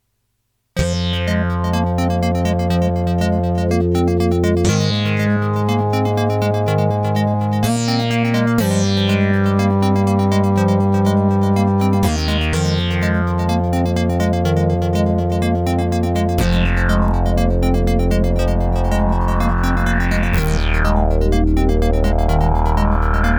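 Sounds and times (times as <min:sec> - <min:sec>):
synthesizer: 0:00.8 - 0:23.3.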